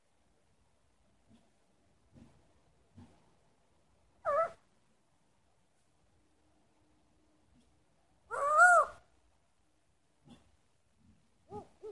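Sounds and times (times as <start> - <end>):
owl hooting: 4.2 - 4.6, 8.3 - 9.1, 11.5 - 11.8.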